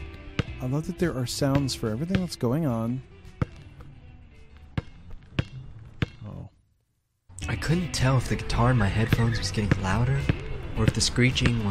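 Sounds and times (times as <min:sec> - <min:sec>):
ball being dribbled on pavement: 0:00.0 - 0:00.7, 0:01.4 - 0:02.6, 0:03.2 - 0:04.0, 0:04.6 - 0:06.2, 0:09.1 - 0:11.7
speech: 0:00.6 - 0:03.1, 0:07.7 - 0:11.7.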